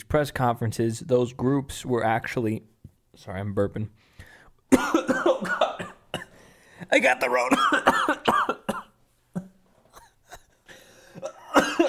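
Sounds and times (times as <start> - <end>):
speech: 0.0 - 4.1, 6.9 - 8.4
person coughing after choking on a drink: 4.7 - 6.4, 7.3 - 11.8.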